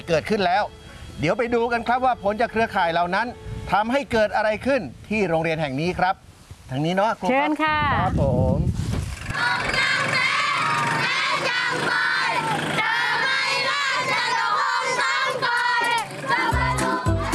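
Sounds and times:
speech: 0:00.1 - 0:08.8
schoolchildren shouting on a truck: 0:09.3 - 0:17.3.

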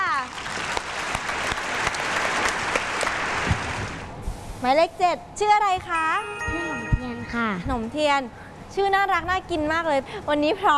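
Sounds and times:
applause cheering a contestant: 0:00.0 - 0:04.0
speech: 0:04.6 - 0:06.7, 0:07.3 - 0:10.7.

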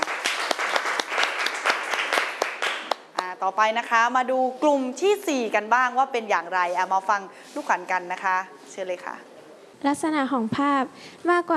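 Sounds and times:
crowd clapping: 0:00.0 - 0:03.4
speech: 0:03.4 - 0:11.5.

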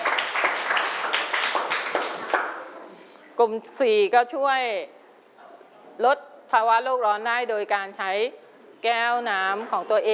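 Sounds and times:
clapping: 0:00.0 - 0:02.7
speech: 0:03.4 - 0:05.0, 0:06.0 - 0:10.1.

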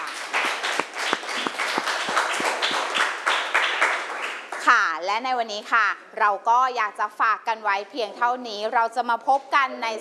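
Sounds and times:
students clapping: 0:00.0 - 0:04.7
speech: 0:05.1 - 0:10.0.

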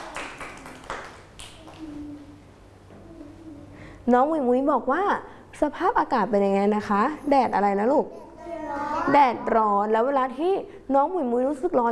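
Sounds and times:
hand clapping: 0:00.0 - 0:02.0
speech: 0:04.1 - 0:08.2, 0:09.0 - 0:11.8.

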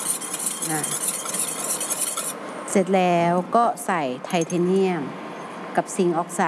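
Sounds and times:
oil mixture stirred in a container: 0:00.0 - 0:02.4
speech: 0:00.6 - 0:01.2, 0:02.8 - 0:05.2, 0:05.8 - 0:06.4.

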